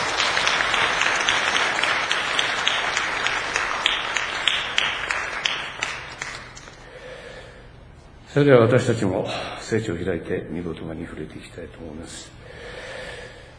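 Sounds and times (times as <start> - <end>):
crowd applauding: 0.0 - 6.8
speech: 8.4 - 12.6.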